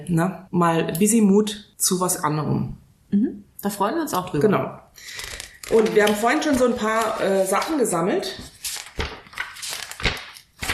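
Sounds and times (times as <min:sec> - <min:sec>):
speech: 0:00.0 - 0:08.5
paper pages being leafed through: 0:05.0 - 0:10.7.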